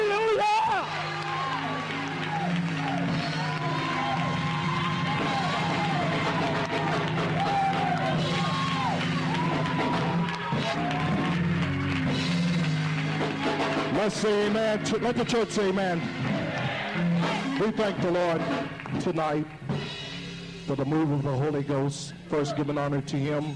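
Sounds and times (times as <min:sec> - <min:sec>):
audience hollering: 0:00.0 - 0:12.2, 0:16.2 - 0:17.7
audience clapping: 0:00.0 - 0:19.6
speech: 0:14.2 - 0:16.2, 0:17.6 - 0:19.6, 0:20.7 - 0:23.5.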